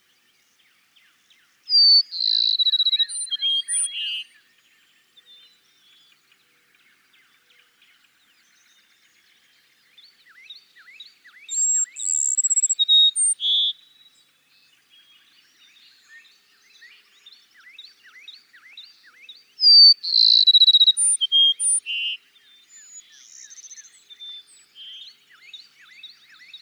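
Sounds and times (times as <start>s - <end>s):
Cassin's sparrow song: 0.0s - 26.5s
another bird's quick dipping chirps: 11.6s - 13.3s, 20.1s - 21.8s.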